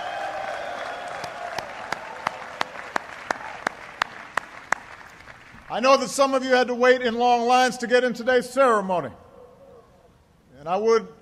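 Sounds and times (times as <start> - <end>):
graduation audience applause: 0.0 - 5.7
loud sharp claps in an even quick rhythm: 0.0 - 5.7
speech: 5.7 - 9.2, 10.6 - 11.2.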